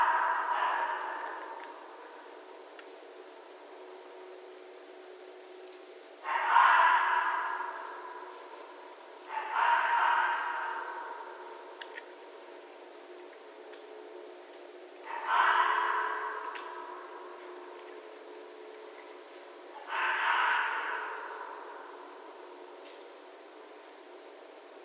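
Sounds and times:
red fox calling: 0.0 - 2.3, 6.2 - 12.2, 15.0 - 18.0, 19.7 - 23.0.

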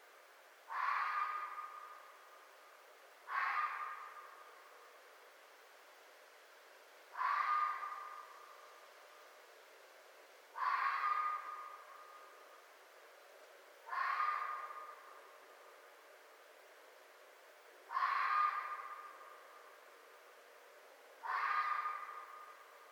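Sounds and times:
red fox giving harsh hoarse ringing barks: 0.7 - 2.2, 3.2 - 4.7, 7.1 - 8.5, 10.6 - 12.3, 13.8 - 15.3, 17.9 - 19.6, 21.2 - 22.6.

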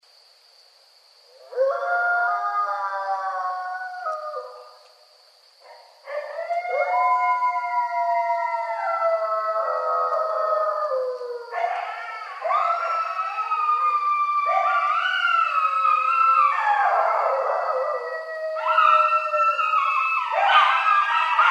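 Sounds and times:
coyotes yipping and howling together: 1.3 - 5.0, 5.6 - 21.4.

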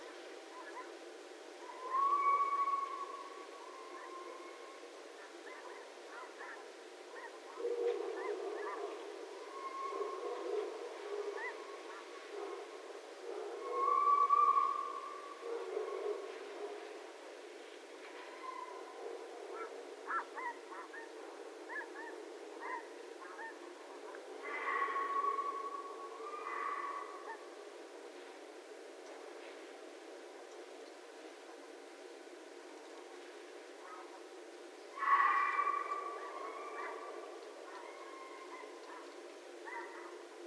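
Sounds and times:
red fox calling: 0.5 - 1.0, 1.6 - 12.7, 13.5 - 16.4, 18.2 - 27.6, 34.9 - 40.2.

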